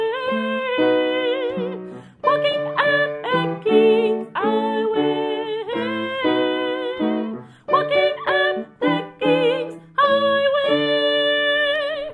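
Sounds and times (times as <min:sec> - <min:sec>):
soprano singing a coda: 0:00.0 - 0:12.1.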